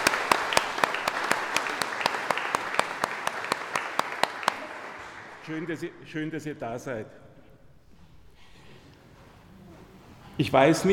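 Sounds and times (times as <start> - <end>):
audience applause: 0.0 - 5.8
speech: 5.5 - 7.3, 10.4 - 10.9.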